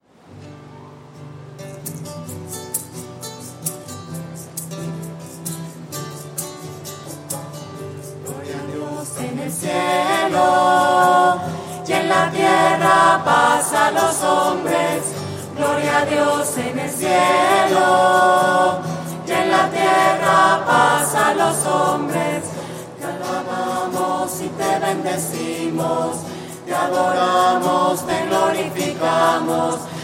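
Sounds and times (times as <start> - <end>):
voices singing: 8.2 - 30.0.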